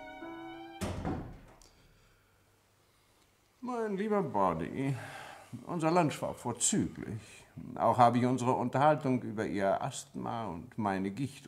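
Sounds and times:
door being closed: 0:00.0 - 0:01.6
speech: 0:03.7 - 0:11.4.

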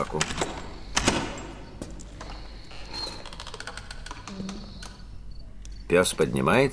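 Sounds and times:
speech: 0:00.0 - 0:00.5, 0:05.9 - 0:06.7
door being unlocked with a key: 0:00.0 - 0:05.0.

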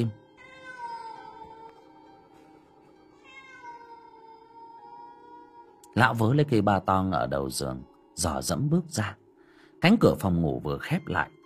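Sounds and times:
speech: 0:00.0 - 0:00.2, 0:06.0 - 0:09.2, 0:09.8 - 0:11.4
cat meowing: 0:00.3 - 0:01.9, 0:03.2 - 0:05.8.

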